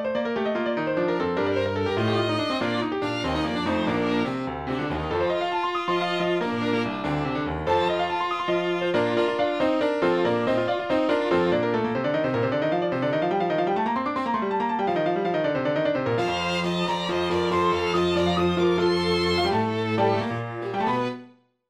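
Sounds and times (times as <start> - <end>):
piano in a piano concerto: 0.0 - 21.5
strings in a piano concerto: 1.1 - 12.4, 16.2 - 21.3.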